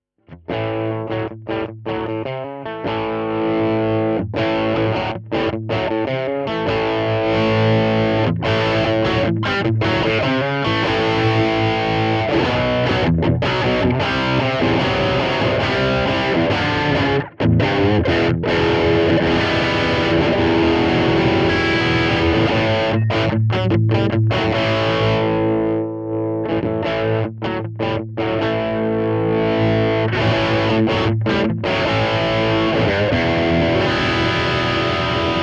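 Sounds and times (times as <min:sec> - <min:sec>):
Tubescream overdriven guitar line: 0:00.3 - 0:35.4.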